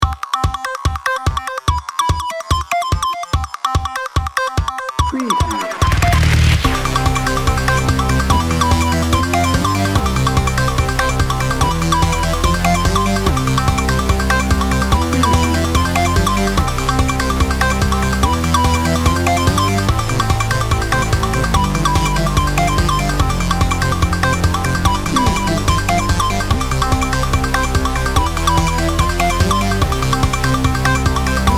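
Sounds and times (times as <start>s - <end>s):
science and technology background music bed: 0.0s - 31.5s.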